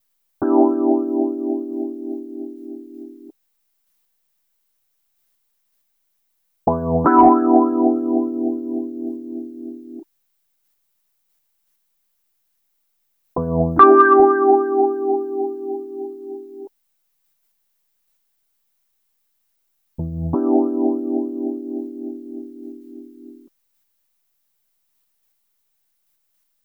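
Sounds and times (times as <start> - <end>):
electro lounge electric piano chords: 0.4 - 3.3, 6.8 - 10.0, 13.4 - 16.7, 20.2 - 23.4.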